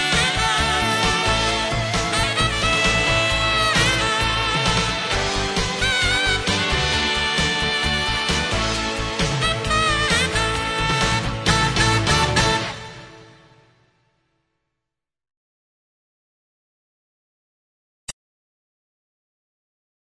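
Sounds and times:
intro music: 0:00.0 - 0:13.7.

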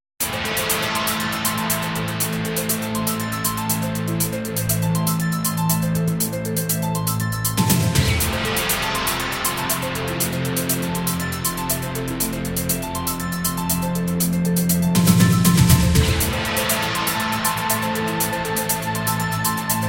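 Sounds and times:
promotional video background music: 0:00.2 - 0:19.8.

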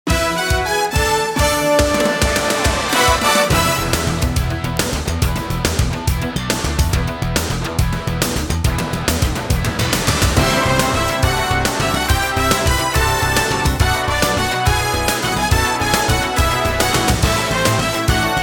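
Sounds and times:
TV ident music: 0:00.1 - 0:18.4.

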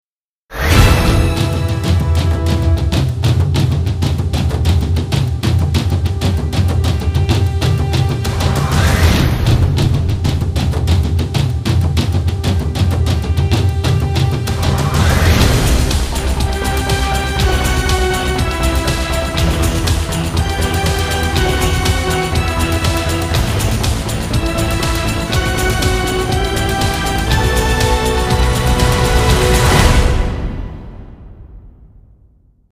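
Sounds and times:
intro music: 0:00.7 - 0:31.9.

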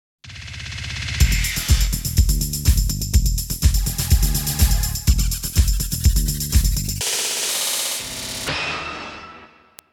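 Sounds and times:
TV ident music: 0:01.0 - 0:08.5.

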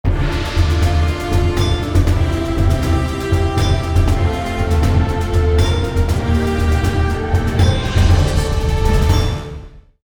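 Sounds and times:
grand background music: 0:00.1 - 0:10.0.

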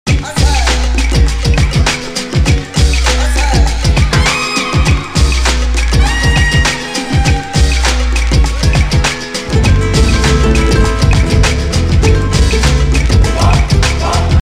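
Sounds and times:
intro music: 0:00.1 - 0:14.3.

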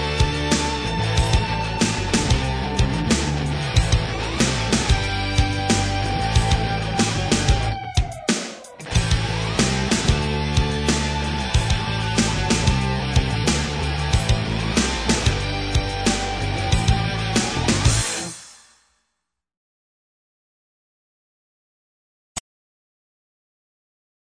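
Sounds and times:
intro music: 0:00.0 - 0:18.8.

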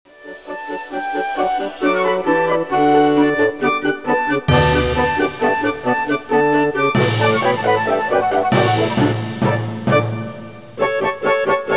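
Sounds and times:
intro music: 0:00.1 - 0:11.6.

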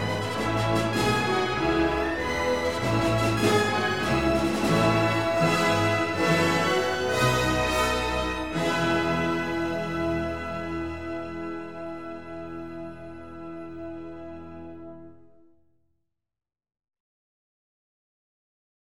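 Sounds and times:
bold heroic background music: 0:00.0 - 0:15.0.

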